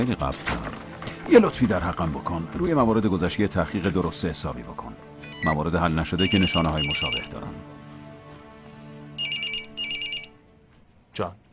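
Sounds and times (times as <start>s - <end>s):
speech: 0.0s - 7.8s, 11.2s - 11.4s
telephone ringing: 6.2s - 7.4s, 9.2s - 10.4s.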